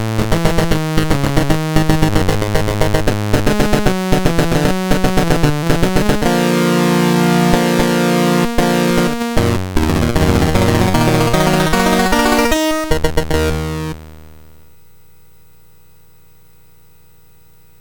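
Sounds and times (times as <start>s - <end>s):
chiptune game music on a MOS6581R4 sound chip: 0.0s - 14.0s.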